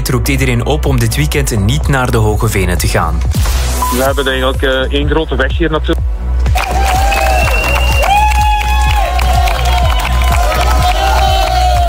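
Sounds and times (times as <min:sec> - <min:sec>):
speech: 0:00.1 - 0:06.0
crowd cheering for arriving walkers: 0:06.5 - 0:11.8.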